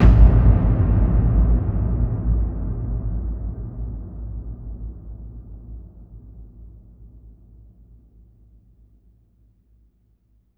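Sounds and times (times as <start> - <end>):
big booming impacts and hits: 0.0 - 5.1.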